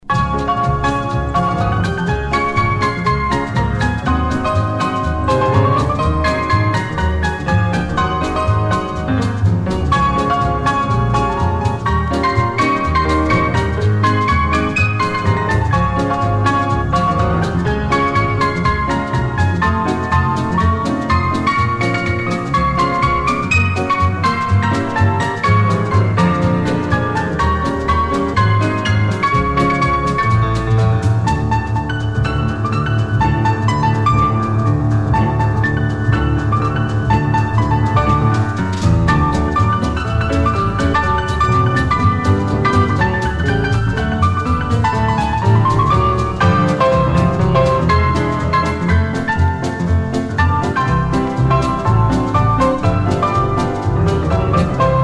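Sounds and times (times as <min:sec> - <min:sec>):
piano party music: 0:00.0 - 0:55.0.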